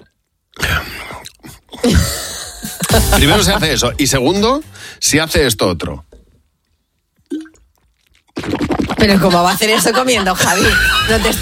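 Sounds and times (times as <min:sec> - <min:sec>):
speech: 0:01.8 - 0:02.2, 0:03.0 - 0:06.1, 0:09.0 - 0:11.3
laughter: 0:02.6 - 0:03.8, 0:09.2 - 0:11.3
drinking water noisily from a glass: 0:07.2 - 0:09.2.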